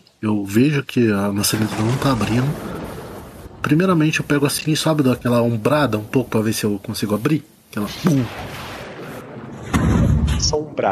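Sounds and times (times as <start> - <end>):
speech: 0.2 - 2.7, 3.6 - 8.6, 10.5 - 10.9
thunder sound effect: 1.5 - 6.3, 7.9 - 10.8.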